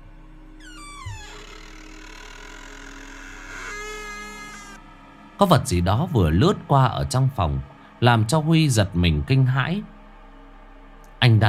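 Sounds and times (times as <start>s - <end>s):
old door hinge creaking open slowly: 0.6s - 4.8s
speech: 5.4s - 9.9s, 11.2s - 11.4s.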